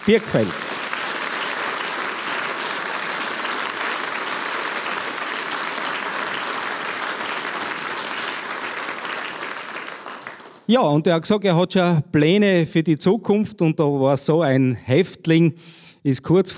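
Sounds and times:
audience applause: 0.0s - 10.7s
speech: 0.1s - 0.8s, 10.7s - 16.5s.

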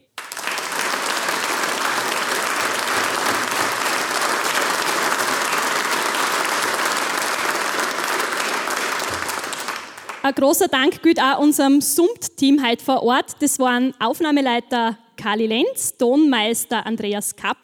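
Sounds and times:
audience applause: 0.2s - 10.3s
speech: 10.3s - 17.6s.

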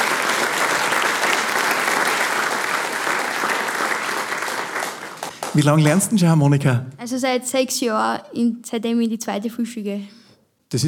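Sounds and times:
audience applause: 0.0s - 6.3s
speech: 5.6s - 10.8s.

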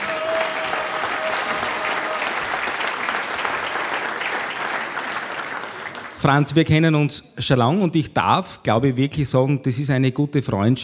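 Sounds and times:
audience applause: 0.0s - 6.2s
speech: 6.2s - 10.8s.

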